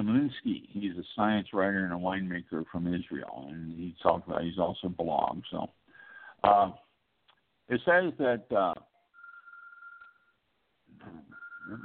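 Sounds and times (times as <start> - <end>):
speech: 0.2 - 5.8, 6.4 - 6.8, 7.7 - 8.9, 11.0 - 11.8
electronic telephone ringing tone: 9.1 - 10.4, 11.3 - 11.8.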